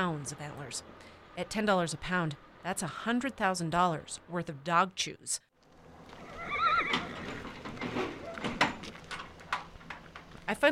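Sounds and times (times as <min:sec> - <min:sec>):
speech: 0:00.0 - 0:05.5, 0:10.5 - 0:10.7
hooves clip-clopping: 0:05.6 - 0:10.7
horse whinnying: 0:06.2 - 0:08.5.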